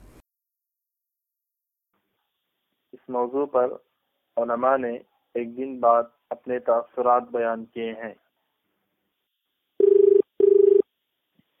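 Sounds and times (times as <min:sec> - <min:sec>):
speech: 0:03.0 - 0:08.2
telephone call ringing on the line: 0:09.8 - 0:10.8.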